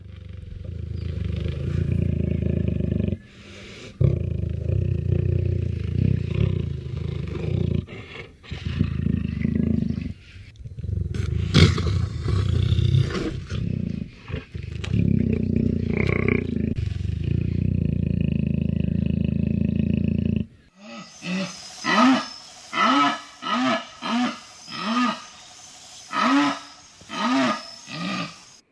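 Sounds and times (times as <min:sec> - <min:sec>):
jaguar purring in the wild: 0:00.0 - 0:25.3
jaguar calling in the wild: 0:20.8 - 0:28.6.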